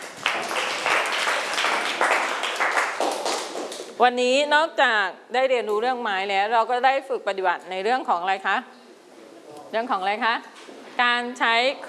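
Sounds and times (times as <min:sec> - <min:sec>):
classroom applause for a student: 0:00.0 - 0:03.9
speech: 0:04.0 - 0:08.8, 0:09.7 - 0:11.8.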